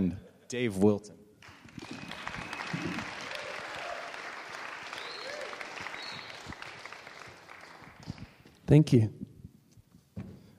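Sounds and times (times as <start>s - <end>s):
speech: 0.0s - 1.2s, 8.7s - 9.3s
audience clapping to greet a guest on stage: 1.4s - 8.7s
audience cheers: 1.5s - 8.3s.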